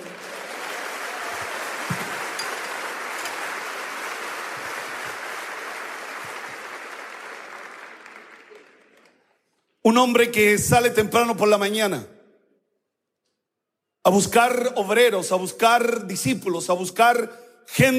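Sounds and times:
audience applause: 0:00.0 - 0:09.4
speech: 0:09.9 - 0:12.1, 0:14.0 - 0:17.9.

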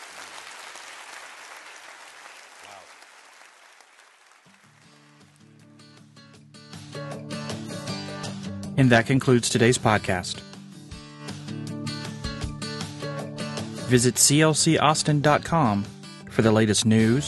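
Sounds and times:
audience clapping hands: 0:00.0 - 0:05.8
speech: 0:08.8 - 0:10.5, 0:13.9 - 0:17.2.

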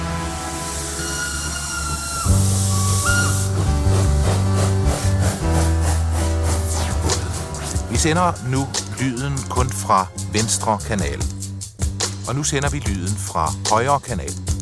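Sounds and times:
steam train setting off: 0:00.2 - 0:10.8
speech: 0:08.0 - 0:11.4, 0:12.3 - 0:14.5.

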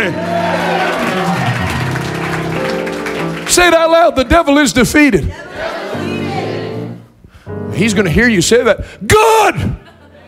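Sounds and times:
audience hand clapping: 0:00.1 - 0:04.8
speech: 0:03.6 - 0:05.4, 0:07.8 - 0:09.8.

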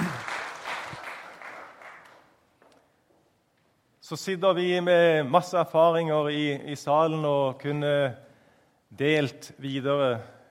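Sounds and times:
audience applause: 0:00.0 - 0:02.4
speech: 0:04.1 - 0:08.3, 0:08.9 - 0:10.4.

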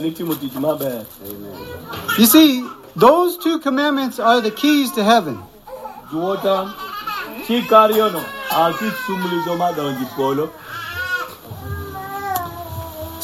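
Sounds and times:
speech: 0:00.0 - 0:05.5, 0:06.1 - 0:06.8, 0:07.5 - 0:10.6
small child crying: 0:04.3 - 0:13.2.

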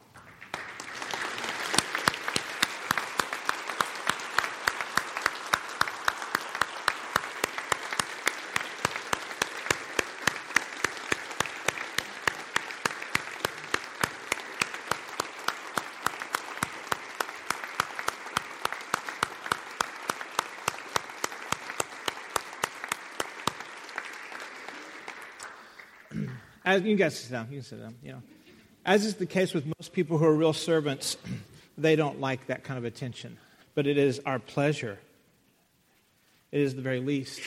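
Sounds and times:
audience applauding for veterans: 0:00.0 - 0:26.6
speech: 0:26.7 - 0:35.1, 0:36.5 - 0:37.4.

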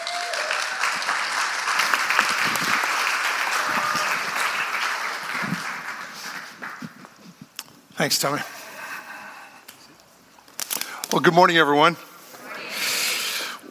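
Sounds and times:
audience applause welcoming a guest speaker: 0:00.0 - 0:07.0
speech: 0:08.0 - 0:08.6, 0:11.1 - 0:12.1.

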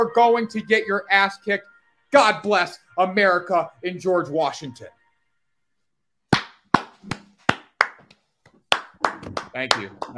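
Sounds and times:
speech: 0:00.0 - 0:05.0, 0:09.6 - 0:10.1
standing applause: 0:06.8 - 0:08.0, 0:08.7 - 0:10.1.

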